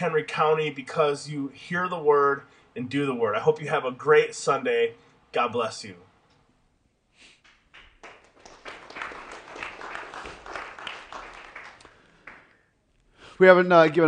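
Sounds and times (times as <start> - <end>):
speech: 0.0 - 6.1, 13.4 - 14.0
roomful of people applauding: 7.4 - 12.8.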